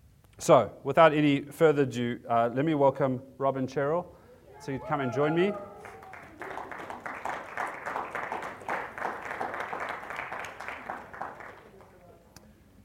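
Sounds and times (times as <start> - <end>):
speech: 0.4 - 5.7
audience clapping: 4.9 - 12.2.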